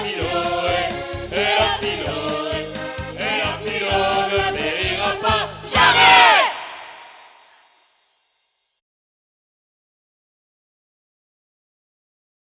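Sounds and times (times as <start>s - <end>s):
chanting: 0.0s - 7.3s.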